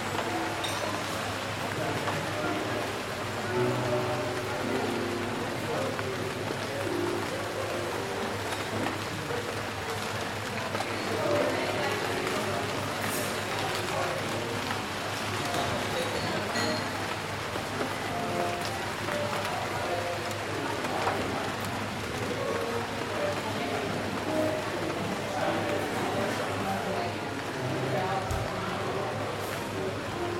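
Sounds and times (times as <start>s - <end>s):
friendly chatter in a rainy coffee shop: 0.0s - 30.3s
rain pattering: 0.0s - 30.3s.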